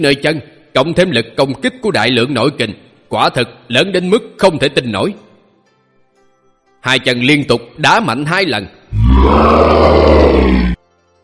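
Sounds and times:
speech: 0.0 - 5.2, 6.8 - 10.8
serpent monster roaring in pain: 8.9 - 10.8.

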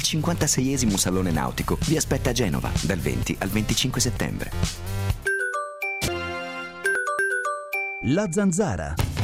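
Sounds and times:
speech: 0.1 - 5.2, 8.0 - 9.1
radio time-signal chime: 5.3 - 8.7.

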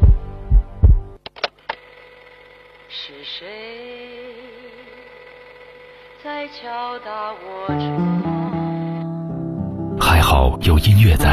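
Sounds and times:
heartbeat sound effect: 0.0 - 1.2
speech: 2.9 - 5.0, 6.2 - 8.3, 10.4 - 11.3.

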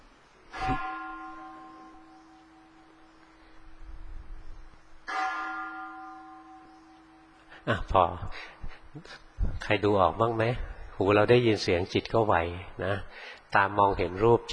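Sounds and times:
bell being struck: 0.5 - 3.2, 5.1 - 7.5
speech: 7.6 - 14.5.

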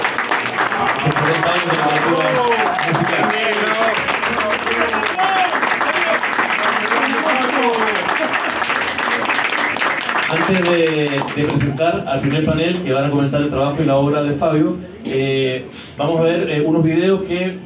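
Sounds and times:
audience applause: 0.0 - 11.8
speech: 1.3 - 4.0, 10.4 - 17.6.

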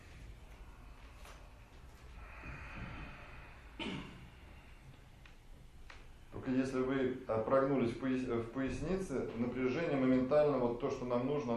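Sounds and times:
slow hissing ujjayi yogic breathing: 0.0 - 6.4
quiet hum: 0.0 - 11.5
speech: 6.5 - 11.5.

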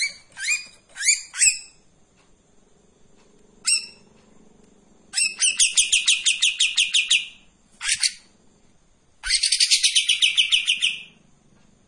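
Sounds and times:
Streak-eared bulbul buzzy chattering song: 0.0 - 1.9, 3.6 - 4.2, 5.0 - 8.4, 9.2 - 11.2.

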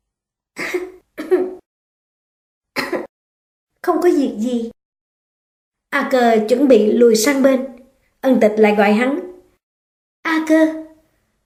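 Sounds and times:
young woman coughing softly: 0.6 - 1.6, 2.8 - 3.1
speech: 3.9 - 4.8, 5.9 - 7.7, 8.3 - 9.2, 10.5 - 10.8.

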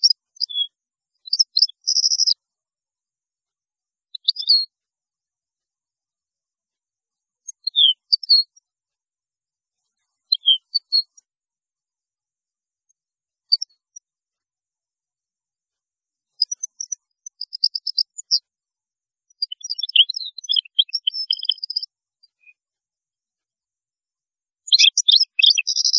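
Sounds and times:
European goldfinch singing: 0.0 - 2.4, 4.2 - 4.7, 7.5 - 8.5, 10.3 - 11.2, 16.4 - 18.4, 19.4 - 22.6, 24.7 - 25.9.

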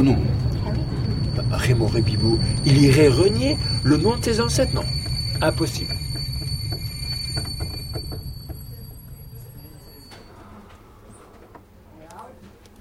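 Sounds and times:
speech: 0.0 - 0.3, 1.7 - 6.0
train rumbling as it pulls into Avignon station: 0.0 - 11.0.

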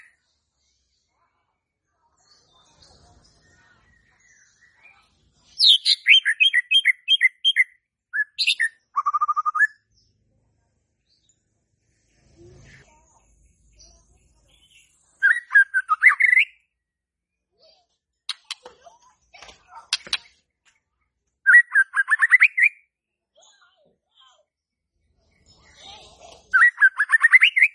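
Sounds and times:
White-rumped shama song of whistles and trills: 5.6 - 9.9, 13.8 - 16.6, 21.4 - 22.9, 25.6 - 27.7.

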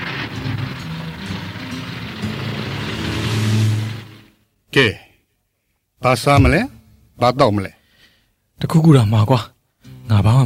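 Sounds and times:
car driving off: 0.0 - 4.4
road noise: 0.0 - 4.5
speech: 4.8 - 5.0, 6.0 - 7.8, 8.6 - 10.4.

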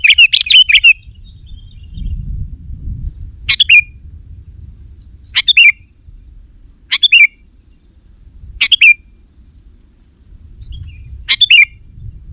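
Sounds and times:
sooty-headed bulbul calls: 0.0 - 2.2, 3.4 - 4.0, 5.3 - 5.9, 6.9 - 7.9, 8.6 - 9.1, 10.6 - 11.9.

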